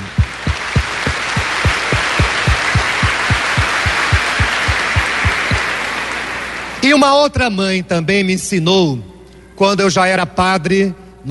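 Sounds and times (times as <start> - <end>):
crowd clapping in rhythm: 0.0 - 7.0
speech: 6.8 - 11.0.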